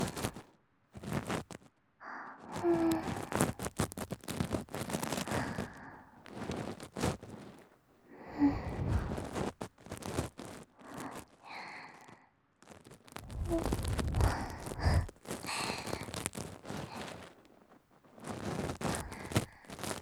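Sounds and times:
ear cleaning in the right ear: 0.0s - 0.4s, 2.6s - 7.4s, 8.2s - 11.2s, 13.2s - 17.4s, 18.2s - 19.9s.

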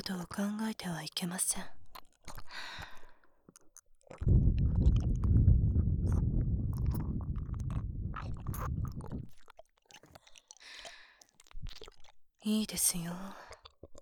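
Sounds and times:
nurse speaking in a low cool voice: 0.0s - 2.0s, 12.4s - 13.6s
ear licking: 2.3s - 12.2s.

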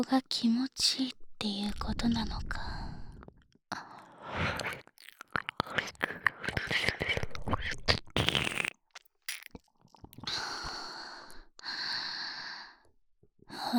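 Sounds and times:
woman whispering in an erotic audio drama: 0.1s - 3.1s, 4.5s - 7.9s, 13.5s - 13.7s
ear licking: 4.4s - 10.3s
deep kissing: 6.1s - 8.7s, 9.3s - 9.5s.

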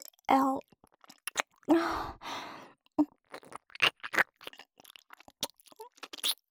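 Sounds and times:
ear licking in the left ear: 0.0s - 1.7s, 3.2s - 6.4s.

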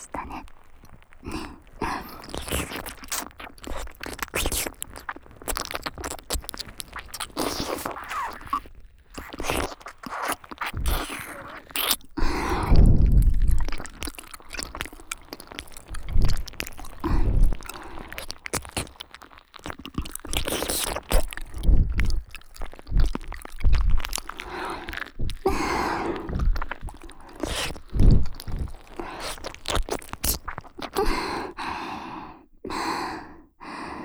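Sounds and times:
person whispering by the ear: 0.0s - 0.5s
wet ear cleaning with an ear pick: 0.0s - 8.6s, 13.5s - 31.2s
licking deep in the ear: 0.0s - 32.8s.

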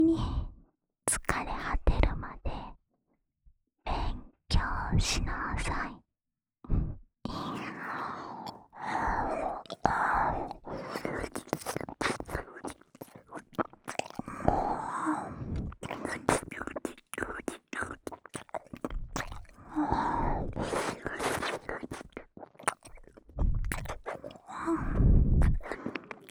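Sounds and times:
person whispering: 1.1s - 2.7s, 3.9s - 5.9s, 7.3s - 26.2s
left ear licking: 7.3s - 26.2s.

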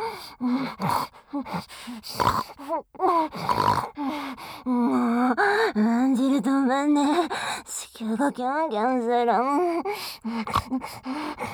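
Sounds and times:
speech: 0.7s - 11.5s
loud sniffing through flared nostrils: 0.9s - 2.7s, 3.3s - 4.6s, 10.0s - 11.5s.

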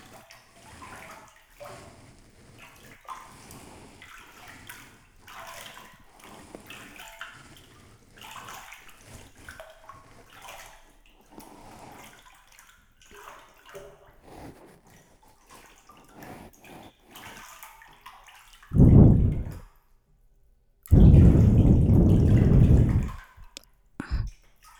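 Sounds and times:
ASMR ear cleaning of the right ear: 14.2s - 15.3s, 16.2s - 17.2s, 20.9s - 24.3s.

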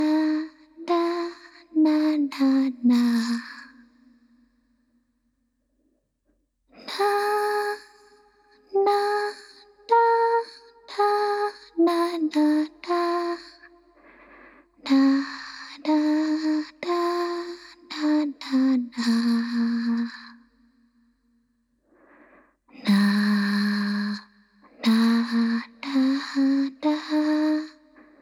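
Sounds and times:
lullaby with reverb: 0.0s - 4.2s, 6.8s - 13.9s, 14.8s - 20.6s, 22.8s - 28.2s.

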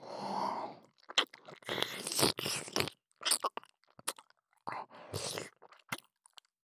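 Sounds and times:
ear licking: 1.0s - 4.3s, 5.2s - 6.0s.

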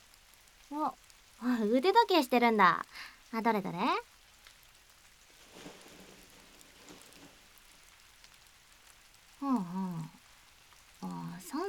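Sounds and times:
rain falling: 0.0s - 11.6s
speech: 0.7s - 4.1s, 9.4s - 10.1s, 11.0s - 11.6s.

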